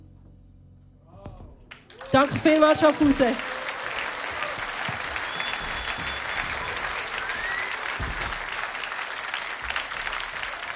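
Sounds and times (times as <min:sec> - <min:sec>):
concert audience applause: 0:01.8 - 0:10.7
speech: 0:02.1 - 0:03.5
faint whistles: 0:05.2 - 0:08.0.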